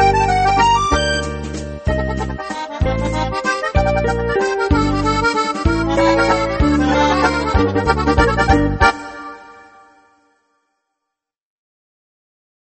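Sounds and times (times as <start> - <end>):
synthesizer playing a valse musette: 0.0 - 10.3.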